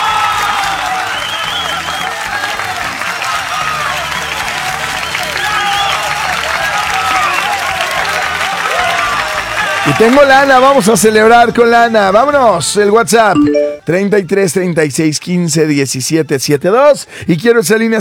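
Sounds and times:
large crowd clapping: 0:00.0 - 0:11.1
speech: 0:09.9 - 0:17.9.

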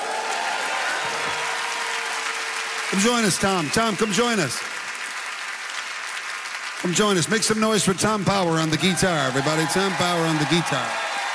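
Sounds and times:
faint cheers: 0:00.0 - 0:04.7, 0:08.7 - 0:11.3
concert audience applause in St. John's: 0:00.0 - 0:11.3
speech: 0:02.9 - 0:04.7, 0:06.8 - 0:11.1.

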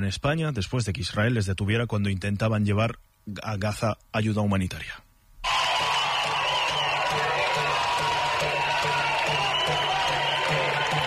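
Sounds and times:
speech: 0:00.0 - 0:05.1
crowd applauding at airport arrivals: 0:05.4 - 0:11.0.

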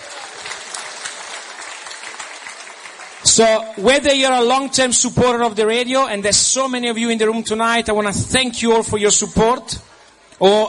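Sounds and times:
audience applause: 0:00.0 - 0:03.5
speech: 0:03.2 - 0:10.6.

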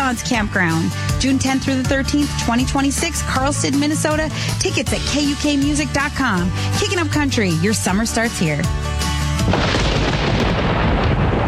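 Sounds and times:
speech: 0:00.1 - 0:09.7
thunder: 0:09.5 - 0:11.4.

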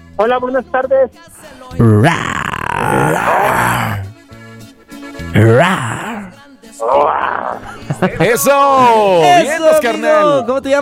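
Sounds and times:
speech: 0:00.2 - 0:03.8, 0:08.0 - 0:10.8
caller imitating a dinosaur roar: 0:01.7 - 0:04.2, 0:05.3 - 0:07.8
laughter: 0:07.4 - 0:09.2.

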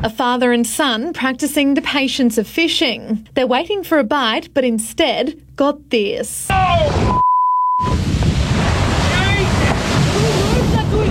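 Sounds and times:
speech: 0:00.0 - 0:08.2
whale breaching whitewater splash: 0:07.8 - 0:11.0.

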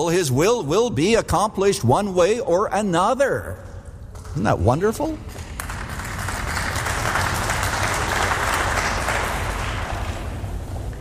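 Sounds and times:
speech: 0:00.0 - 0:03.7, 0:04.4 - 0:05.4
audience clapping: 0:04.2 - 0:10.9.

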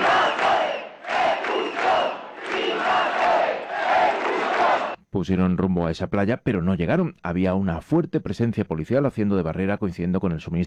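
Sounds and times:
crowd of protesters cheering and shouting: 0:00.0 - 0:05.0
speech: 0:05.2 - 0:10.6.

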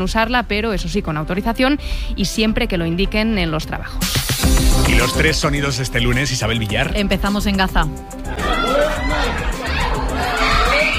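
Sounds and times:
speech: 0:00.0 - 0:09.6
crowd babble: 0:08.0 - 0:10.9
grieving family screaming and wailing: 0:08.2 - 0:10.9.

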